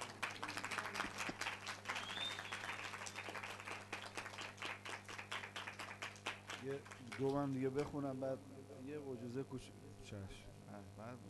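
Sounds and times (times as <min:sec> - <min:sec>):
audience clapping: 0:00.0 - 0:08.0
speech: 0:06.6 - 0:11.2.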